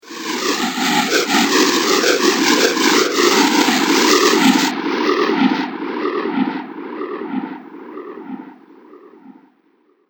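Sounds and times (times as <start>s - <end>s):
air whoosh: 0.0s - 5.8s.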